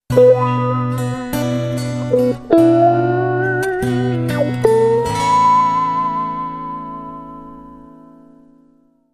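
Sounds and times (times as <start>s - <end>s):
ballad with wah effect: 0.1s - 7.2s.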